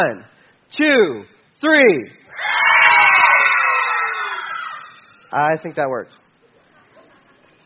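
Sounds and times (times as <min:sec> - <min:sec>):
speech: 0:00.0 - 0:02.6, 0:05.3 - 0:06.2
crowd of children and adults screaming: 0:02.3 - 0:05.3.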